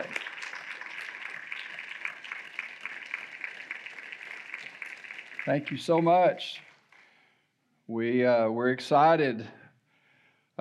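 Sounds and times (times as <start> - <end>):
audience applause for fathers: 0.0 - 7.1
speech: 5.5 - 6.7, 7.9 - 9.6.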